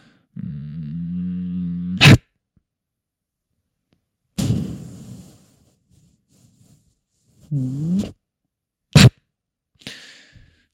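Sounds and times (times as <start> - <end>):
person imitating a crocodile: 0.4 - 2.2
speech: 7.5 - 8.2.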